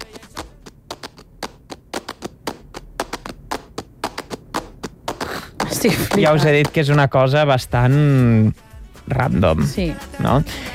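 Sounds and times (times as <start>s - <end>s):
hand claps recorded in a dining room at home: 0.0s - 7.2s
speech: 5.8s - 10.7s.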